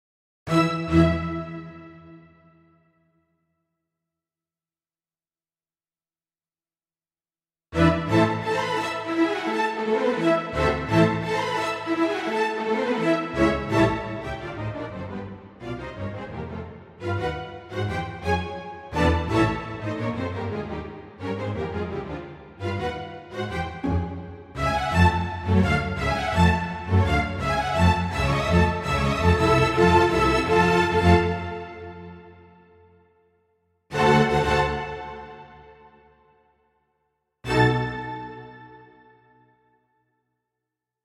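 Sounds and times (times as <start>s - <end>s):
strings: 0.5s - 2.2s, 7.8s - 32.5s, 33.9s - 35.9s, 37.5s - 39.1s.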